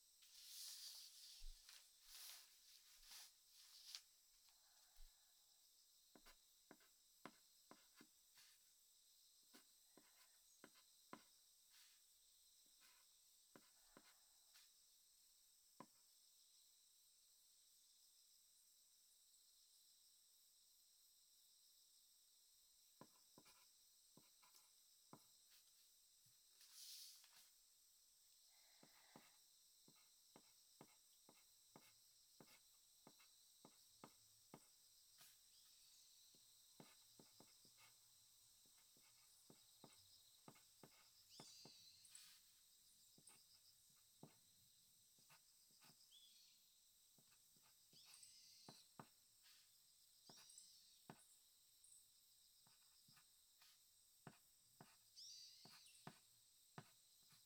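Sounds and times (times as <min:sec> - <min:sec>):
diary writing sounds: 0:00.2 - 0:04.1, 0:06.1 - 0:08.6, 0:09.5 - 0:12.1, 0:12.8 - 0:14.7, 0:23.0 - 0:25.8, 0:26.6 - 0:27.6, 0:28.8 - 0:35.5, 0:36.8 - 0:38.0, 0:38.8 - 0:42.5, 0:43.1 - 0:44.4, 0:45.2 - 0:46.2, 0:47.2 - 0:51.3, 0:52.6 - 0:57.4.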